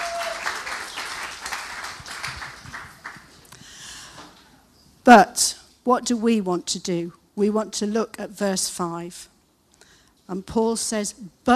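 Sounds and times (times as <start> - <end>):
audience clapping: 0.0 - 3.5
speech: 5.0 - 9.3, 10.3 - 11.5.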